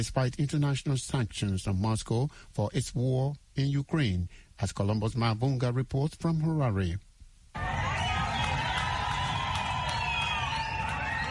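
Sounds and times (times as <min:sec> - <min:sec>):
speech: 0:00.0 - 0:07.8
crowd clapping and cheering: 0:07.6 - 0:11.2.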